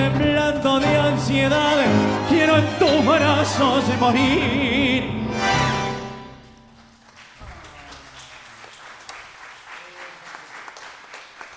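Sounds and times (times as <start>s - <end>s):
speech: 0.1s - 5.6s
audience applause: 6.6s - 11.5s.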